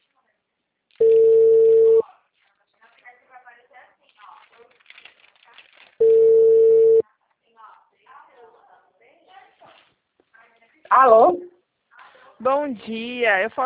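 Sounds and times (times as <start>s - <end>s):
telephone ringback tones while waiting for an answer: 1.0s - 2.0s, 6.0s - 7.0s
person talking quietly: 10.9s - 11.5s
speech: 12.5s - 13.6s.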